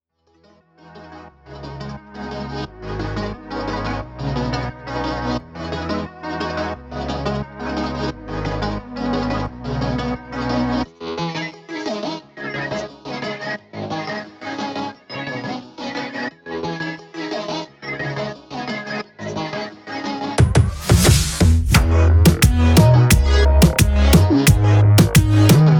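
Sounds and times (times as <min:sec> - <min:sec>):
reggaeton instrumental: 0:06.0 - 0:25.7.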